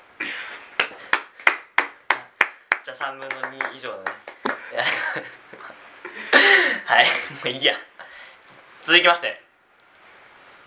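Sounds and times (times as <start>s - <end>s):
people clapping in approval of a motion: 0.7s - 4.7s
speech: 2.9s - 5.5s, 6.2s - 7.9s, 8.8s - 9.4s
laughter: 4.6s - 7.6s.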